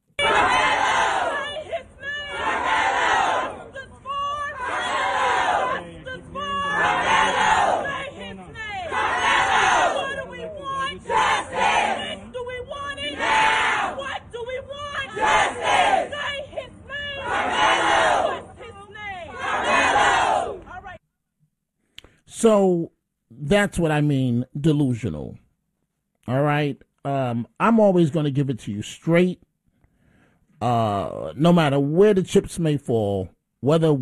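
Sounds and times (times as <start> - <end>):
large crowd of supporters shouting and chanting outside courthouse: 0.1 - 21.0
speech: 22.4 - 22.9, 23.5 - 25.4, 26.3 - 29.5, 30.6 - 34.0.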